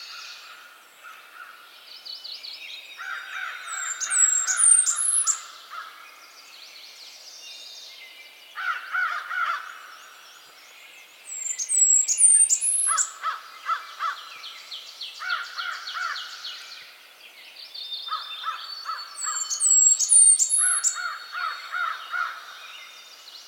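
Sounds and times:
Blackburnian Warbler Setophaga fusca calling: 2.7 - 6.5, 8.5 - 16.9, 17.8 - 23.4.

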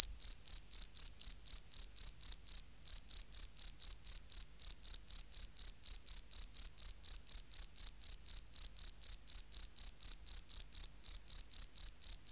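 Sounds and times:
field cricket chirping: 0.0 - 12.2.

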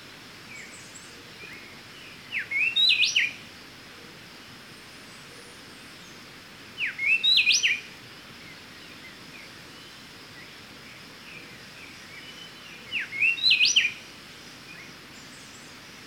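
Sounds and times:
Pheugopedius sclateri speckle-breasted wren singing whistled phrases: 0.5 - 3.4, 6.8 - 10.5, 11.4 - 14.1.

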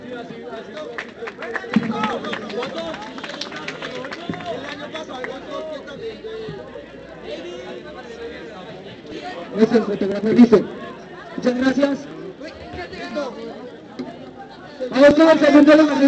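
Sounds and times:
audience applause: 0.6 - 5.7
speech: 9.2 - 10.8, 11.4 - 12.0, 15.2 - 16.0.

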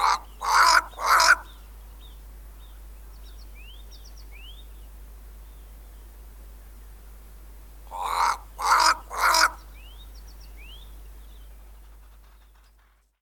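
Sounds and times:
Cape crow Corvus capensis cawing: 0.0 - 1.5, 7.9 - 9.6.

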